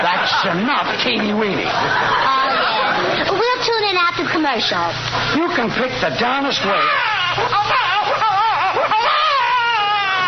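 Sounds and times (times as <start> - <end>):
laughter: 0.0 - 3.3
speech: 0.4 - 7.9
babies crying: 6.6 - 10.2.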